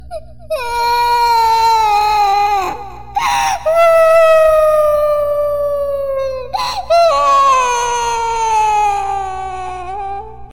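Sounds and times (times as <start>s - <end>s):
person crying: 0.6s - 10.5s.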